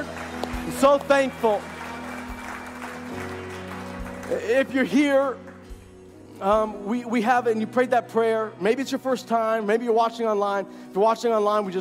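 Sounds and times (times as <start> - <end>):
church audience applause: 0.0 - 5.8
speech: 0.8 - 1.7, 4.3 - 5.4, 6.4 - 11.7.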